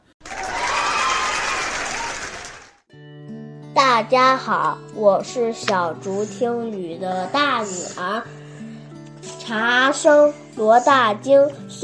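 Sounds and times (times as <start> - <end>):
audience applause: 0.2 - 2.8
speech: 3.8 - 8.4, 9.5 - 11.8.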